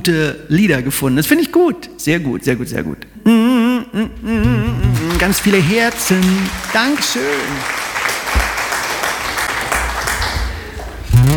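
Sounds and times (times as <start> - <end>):
speech: 0.0 - 7.8
applause: 5.0 - 11.1.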